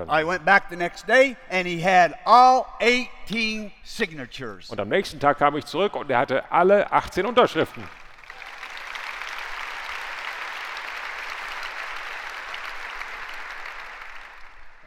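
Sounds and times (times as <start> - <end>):
speech: 0.0 - 8.0
audience clapping: 7.0 - 14.8.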